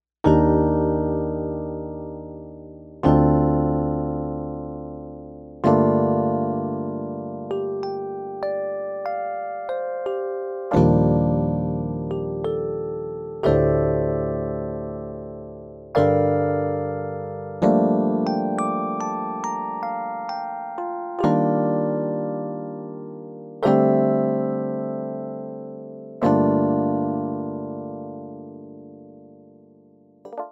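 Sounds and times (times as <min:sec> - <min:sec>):
1970s Rhodes-style electric piano: 0:00.2 - 0:30.5.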